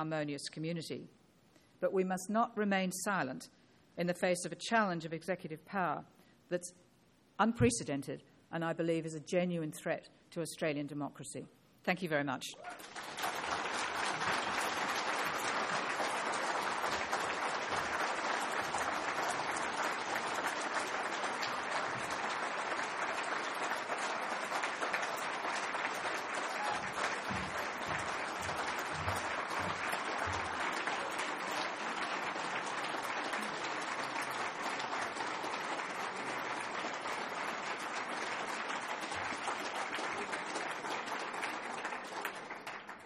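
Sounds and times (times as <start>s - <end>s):
speech: 0.0s - 1.2s, 1.8s - 6.8s, 7.4s - 13.1s
audience applause: 12.6s - 43.0s.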